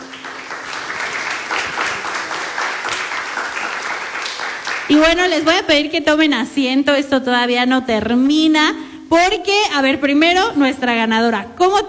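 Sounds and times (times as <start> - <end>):
audience applause: 0.0 - 5.1
speech: 4.9 - 11.8.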